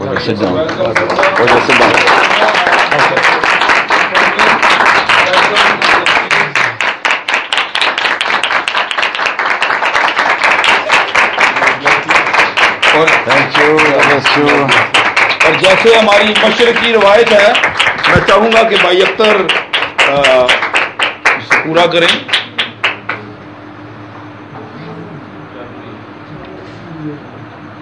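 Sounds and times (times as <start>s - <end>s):
audience clapping in unison at a gathering honoring two guests: 0.0s - 23.3s
speech: 0.1s - 3.6s, 13.0s - 20.6s, 21.6s - 22.3s.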